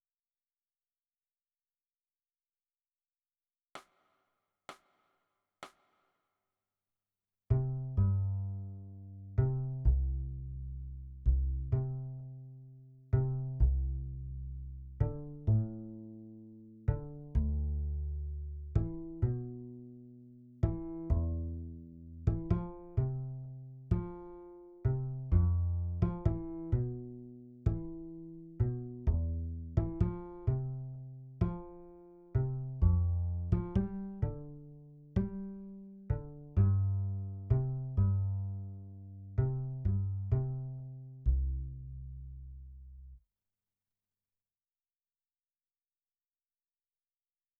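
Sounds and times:
bass: 0:07.5 - 0:43.2.

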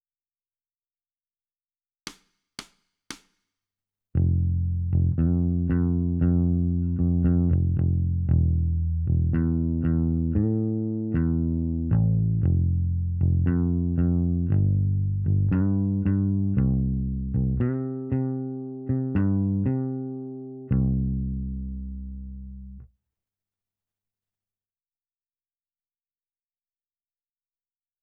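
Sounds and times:
bass: 0:04.2 - 0:22.9.

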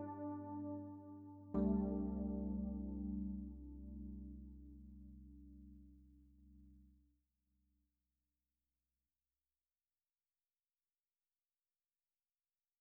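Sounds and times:
electric piano: 0:00.0 - 0:06.1.

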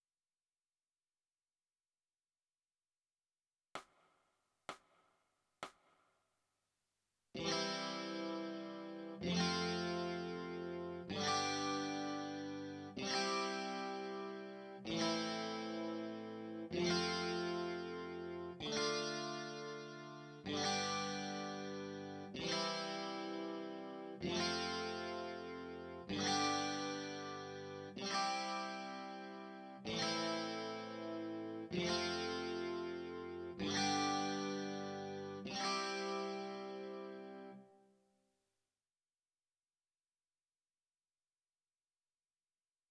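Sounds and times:
electric guitar: 0:07.4 - 0:37.6.

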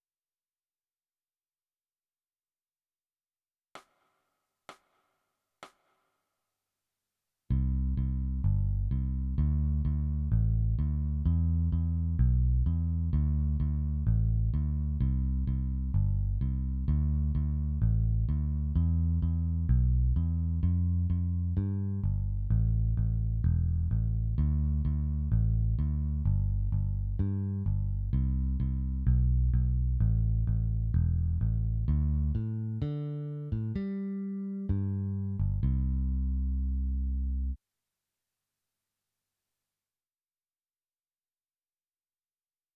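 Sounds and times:
bass: 0:07.5 - 0:37.6.

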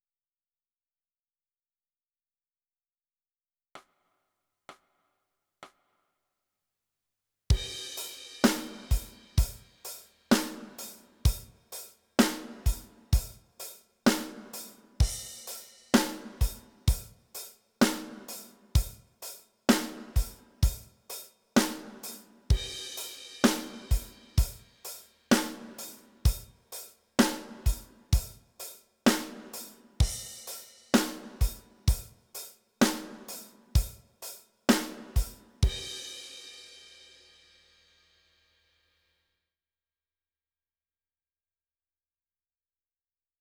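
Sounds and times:
drums: 0:07.5 - 0:38.5.

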